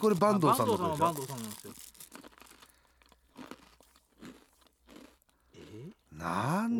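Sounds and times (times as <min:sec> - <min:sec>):
speech: 0:00.0 - 0:01.8, 0:06.2 - 0:06.7
person biting and chewing crunchy food: 0:00.0 - 0:06.2.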